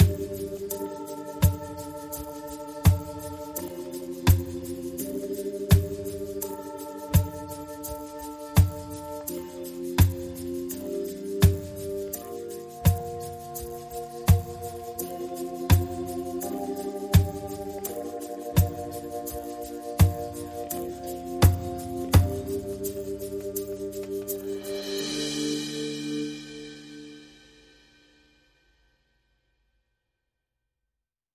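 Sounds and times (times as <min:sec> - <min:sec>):
synth pads: 0:00.0 - 0:28.0
percussion: 0:00.0 - 0:29.2.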